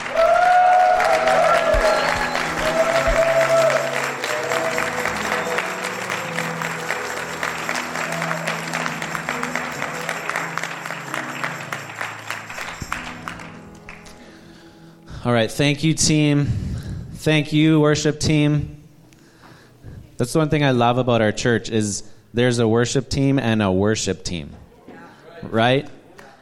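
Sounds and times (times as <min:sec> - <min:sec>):
audience clapping and cheering: 0:00.0 - 0:14.2
speech: 0:15.5 - 0:18.8, 0:20.2 - 0:24.6, 0:25.5 - 0:26.0.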